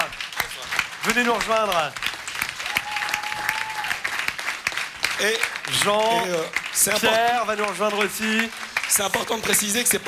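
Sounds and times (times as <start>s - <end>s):
audience applause welcoming a band onto the stage: 0.0s - 10.0s
speech: 1.1s - 2.0s, 5.2s - 10.0s.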